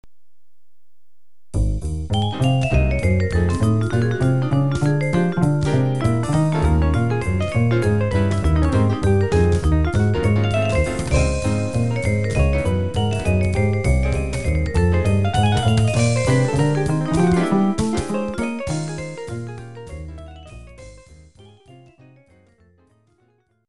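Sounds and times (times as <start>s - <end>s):
jazz music: 1.5s - 23.1s.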